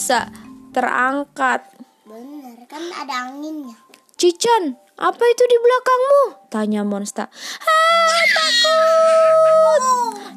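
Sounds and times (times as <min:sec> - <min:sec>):
speech: 0:00.1 - 0:10.3
startled scream: 0:07.7 - 0:10.2.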